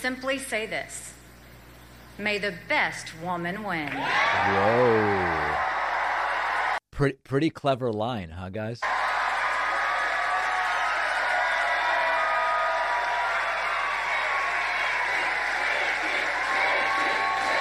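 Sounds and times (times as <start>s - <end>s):
speech: 0.0s - 1.2s, 2.2s - 5.7s, 7.0s - 9.0s
crowd cheering: 3.8s - 6.8s, 8.8s - 17.5s.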